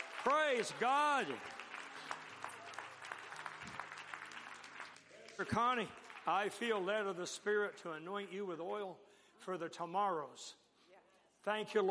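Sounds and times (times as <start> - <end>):
audience clapping: 0.0 - 7.9
speech: 0.2 - 1.6, 5.4 - 10.6, 11.4 - 11.8.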